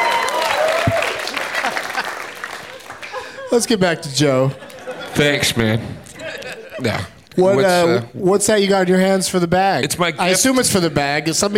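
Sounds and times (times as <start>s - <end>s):
audience applause: 0.0s - 3.5s
laughter: 0.8s - 7.3s
speech: 3.5s - 4.6s, 5.2s - 6.0s, 6.8s - 11.5s.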